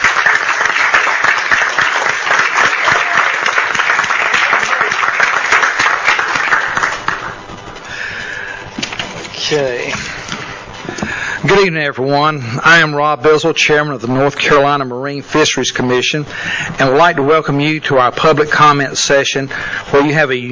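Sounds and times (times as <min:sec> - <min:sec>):
audience applause: 0:00.0 - 0:07.6
speech: 0:09.5 - 0:10.0, 0:11.5 - 0:20.5.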